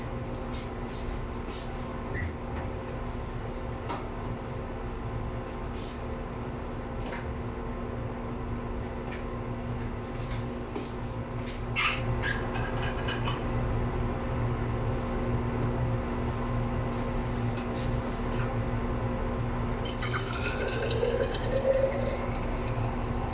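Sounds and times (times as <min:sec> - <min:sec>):
steady low hum in a kitchen: 0:00.0 - 0:23.3
kitchen clicks and clatters: 0:12.5 - 0:13.4.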